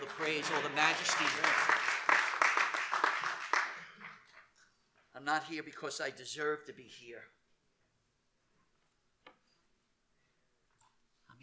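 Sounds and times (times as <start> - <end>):
audience hand clapping: 0.0 - 4.5
speech: 0.2 - 2.0, 5.2 - 7.4.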